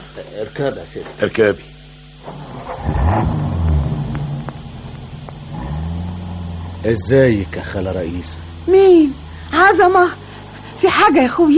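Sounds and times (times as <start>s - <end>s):
speech: 0.2s - 3.6s, 6.8s - 10.2s, 10.8s - 11.5s
taxi car engine driving off: 2.2s - 11.5s.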